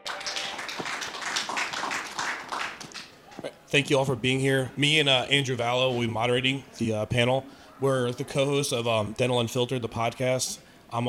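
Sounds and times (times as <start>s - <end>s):
audience applause: 0.0s - 3.2s
speech: 3.7s - 11.0s.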